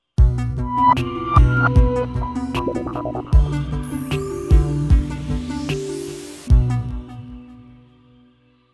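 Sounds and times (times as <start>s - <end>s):
dark jingle: 0.5s - 4.9s.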